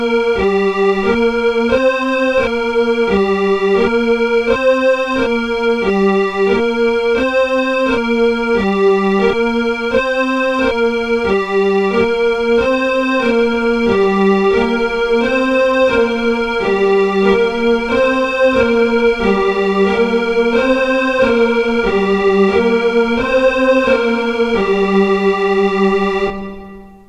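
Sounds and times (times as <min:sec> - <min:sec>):
organ with chorus and reverb effects: 0:00.0 - 0:27.0.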